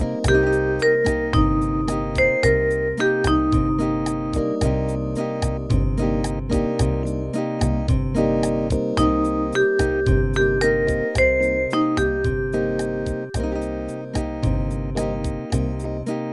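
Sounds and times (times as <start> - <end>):
minor seventh chord arpeggio in first inversion: 0.0 - 16.3.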